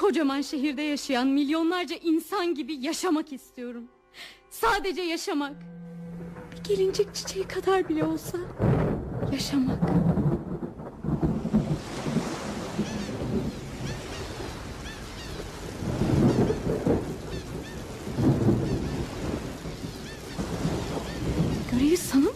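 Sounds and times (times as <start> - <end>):
speech: 0.1 - 5.9, 6.7 - 10.5
rain: 5.8 - 22.3.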